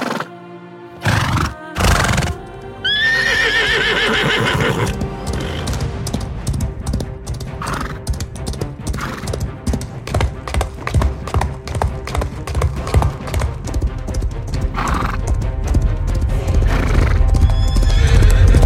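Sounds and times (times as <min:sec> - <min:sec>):
horses: 0:01.0 - 0:18.6.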